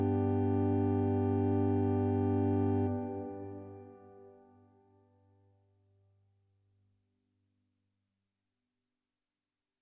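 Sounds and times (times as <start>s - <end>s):
organ chorale: 0.0s - 4.4s.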